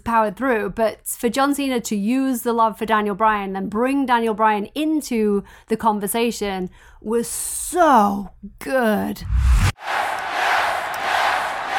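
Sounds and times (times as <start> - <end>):
speech: 0.1 - 9.9
large arena crowd roaring and cheering: 9.6 - 11.7.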